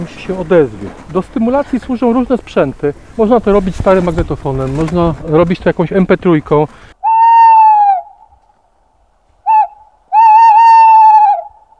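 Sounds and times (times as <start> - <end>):
speech: 0.0 - 6.8
tawny owl hooting: 7.0 - 8.3, 9.4 - 11.7.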